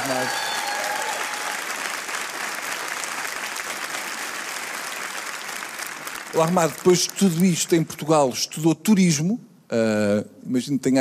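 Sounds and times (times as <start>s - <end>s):
round of applause: 0.0s - 7.9s
speech: 6.3s - 10.9s.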